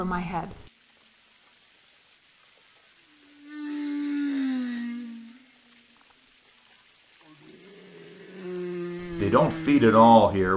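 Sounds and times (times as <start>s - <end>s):
speech: 0.0s - 0.7s, 9.2s - 10.5s
humpback whale moan underwater: 3.2s - 6.1s, 7.2s - 10.5s.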